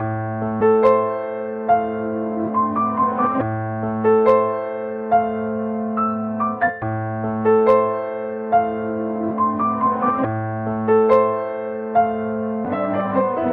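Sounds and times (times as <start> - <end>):
sad piano: 0.0 - 13.5.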